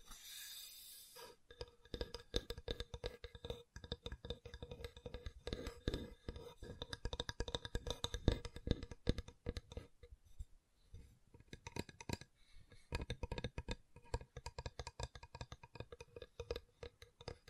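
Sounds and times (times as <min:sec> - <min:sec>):
tapping and clicking on wood: 0:01.5 - 0:09.9, 0:12.9 - 0:17.4.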